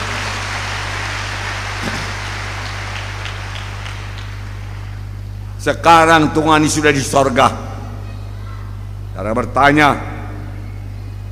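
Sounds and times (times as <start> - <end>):
applause: 0.0 - 5.1
speech: 5.6 - 7.7, 9.2 - 10.1.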